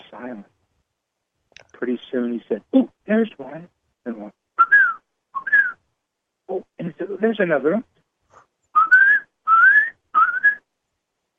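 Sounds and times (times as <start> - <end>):
speech: 0.1 - 0.6, 1.8 - 4.4, 6.5 - 7.9
whistled imitation of a hermit thrush song: 4.6 - 5.8, 8.7 - 10.7.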